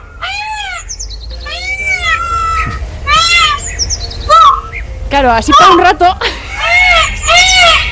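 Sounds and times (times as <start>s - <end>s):
peacock calling: 0.0s - 7.8s
speech: 5.2s - 6.3s.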